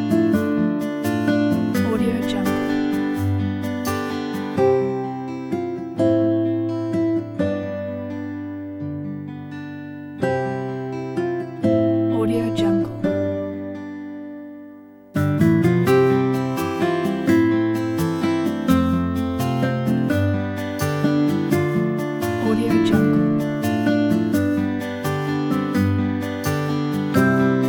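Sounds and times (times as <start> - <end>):
easy light acoustic music: 0.0 - 27.6.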